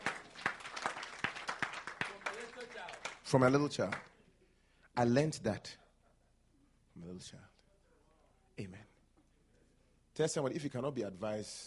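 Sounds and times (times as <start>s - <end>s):
audience clapping: 0.0s - 4.2s
speech: 3.3s - 4.1s, 5.0s - 5.8s, 7.0s - 7.5s, 8.6s - 8.9s, 10.2s - 11.6s.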